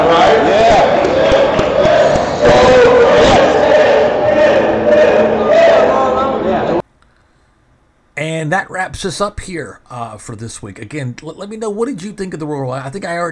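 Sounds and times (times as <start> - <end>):
live audience cheering: 0.0 - 6.8
speech: 8.6 - 13.3.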